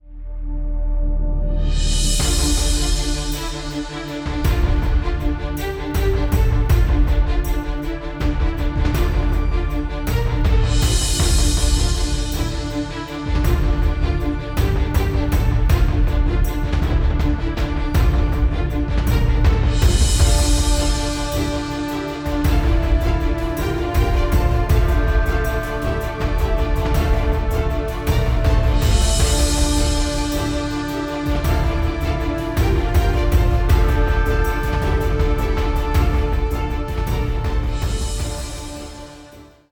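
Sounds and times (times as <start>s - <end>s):
tense warning pursuit music: 0.0s - 39.6s.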